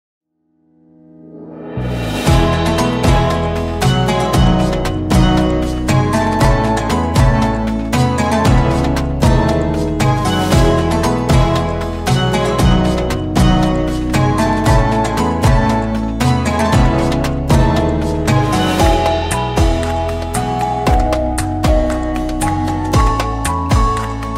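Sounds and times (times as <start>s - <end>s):
Ramadan background music: 0.9s - 24.3s.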